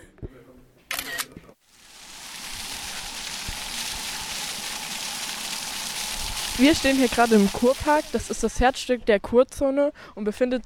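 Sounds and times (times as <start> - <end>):
camera shutter clicks taking a photo: 0.9 - 1.3
speech: 6.6 - 10.6.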